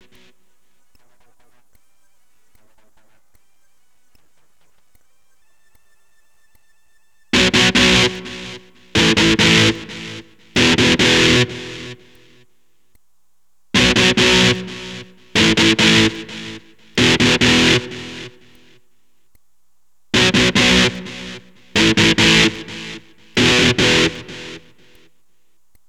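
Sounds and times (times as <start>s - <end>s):
electric guitar power chord: 7.4s - 12.2s, 13.8s - 18.6s, 20.2s - 25.0s.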